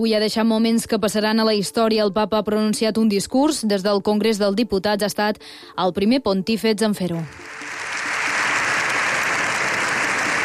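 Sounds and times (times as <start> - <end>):
speech: 0.0 - 7.7
standing ovation applause in parliament: 7.3 - 10.4.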